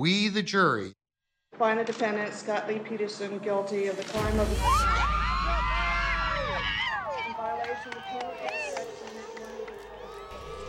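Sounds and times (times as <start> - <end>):
speech: 0.0 - 1.0, 1.6 - 5.6
crowd cheering wildly outside courthouse: 4.5 - 10.6.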